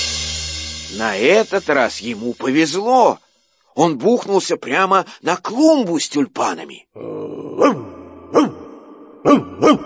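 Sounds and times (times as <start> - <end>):
speech: 1.0 - 8.6, 9.2 - 9.8
large black dog barking: 7.6 - 9.8.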